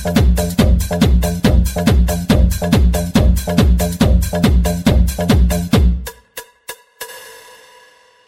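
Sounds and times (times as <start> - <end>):
deep house music: 0.0 - 6.2.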